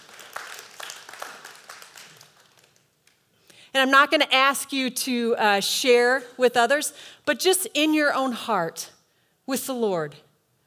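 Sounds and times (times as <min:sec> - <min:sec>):
audience applause: 0:00.0 - 0:02.7
speech: 0:03.8 - 0:10.2.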